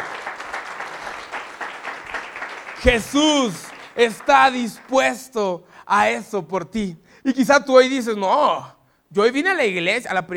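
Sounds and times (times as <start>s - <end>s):
audience applause: 0.0s - 5.2s
speech: 2.8s - 10.3s.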